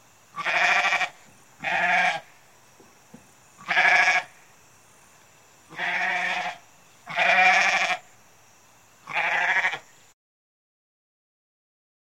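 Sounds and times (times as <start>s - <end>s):
goat bleating: 0.4s - 2.3s, 3.6s - 4.3s, 5.7s - 8.0s, 9.1s - 9.8s.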